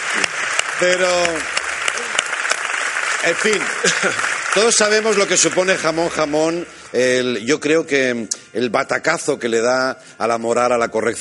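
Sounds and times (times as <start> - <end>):
audience applause: 0.0 - 7.4
speech: 0.2 - 1.6, 3.2 - 11.1
laughter: 3.5 - 4.8.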